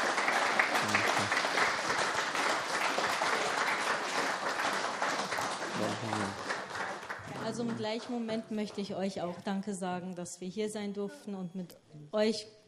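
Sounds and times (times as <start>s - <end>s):
audience applause: 0.0s - 8.2s
speech: 7.6s - 12.6s.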